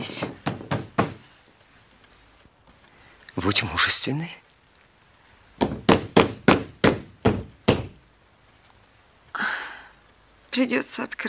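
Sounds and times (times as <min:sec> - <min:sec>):
pounding on a door: 0:00.1 - 0:01.2, 0:05.6 - 0:08.0
speech: 0:03.4 - 0:04.4, 0:10.6 - 0:11.2.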